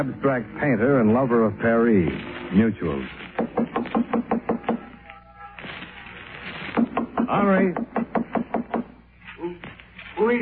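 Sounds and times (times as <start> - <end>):
speech: 0.0 - 3.7, 7.3 - 8.0
rustling: 1.9 - 4.0, 5.0 - 6.8, 9.2 - 10.3
knuckles knocking on the door of a brownstone apartment in the Village: 3.4 - 4.9, 6.8 - 8.9.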